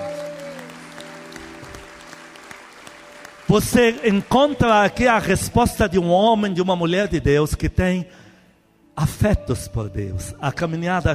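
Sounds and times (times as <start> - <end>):
crowd clapping: 0.0 - 5.9
speech: 3.5 - 8.2, 9.0 - 11.1.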